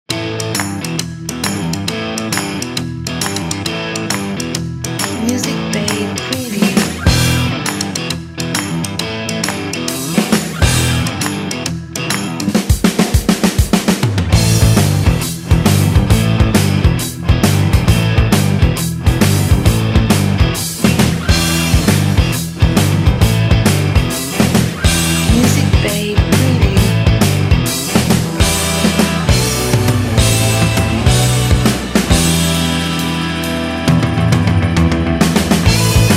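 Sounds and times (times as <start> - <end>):
vintage rock music: 0.1 - 36.1.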